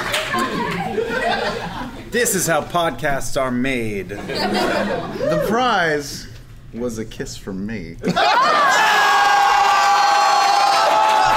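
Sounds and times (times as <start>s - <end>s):
laughter: 0.0s - 2.1s, 4.2s - 5.5s, 8.0s - 9.8s
speech: 2.1s - 8.7s
audience applause: 8.4s - 11.3s.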